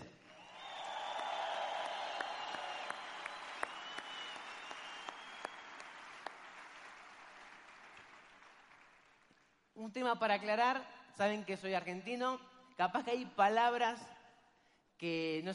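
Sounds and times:
audience applause: 0:00.3 - 0:09.4
speech: 0:09.8 - 0:14.2, 0:15.0 - 0:15.5.

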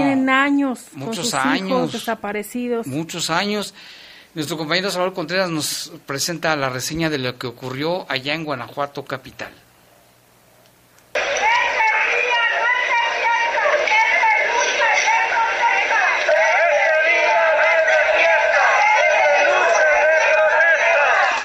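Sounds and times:
speech: 0:00.2 - 0:09.6
protest march crowd chanting in unison: 0:11.2 - 0:21.4.

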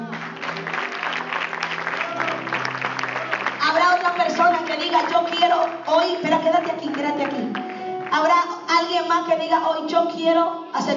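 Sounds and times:
audience applauding: 0:00.0 - 0:08.3
speech: 0:05.1 - 0:10.9.

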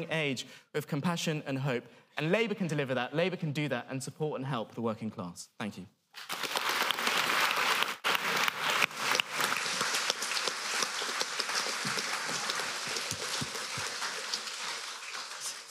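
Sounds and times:
speech: 0:00.0 - 0:06.5
audience applause: 0:06.2 - 0:15.7.

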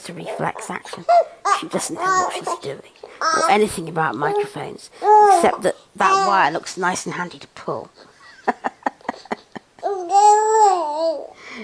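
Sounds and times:
speech: 0:00.0 - 0:08.6
baby girl babbling: 0:01.1 - 0:02.6, 0:03.2 - 0:03.6, 0:05.0 - 0:06.4, 0:09.8 - 0:11.4.

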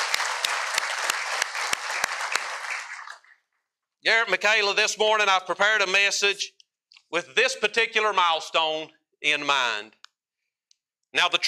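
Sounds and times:
audience applause: 0:00.0 - 0:03.4
speech: 0:04.1 - 0:10.0, 0:11.1 - 0:11.4.

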